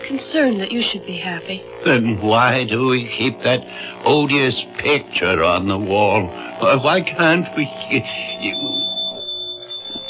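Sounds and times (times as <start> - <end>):
speech: 0.1 - 8.8
tinkle of a shop door bell: 8.2 - 10.0.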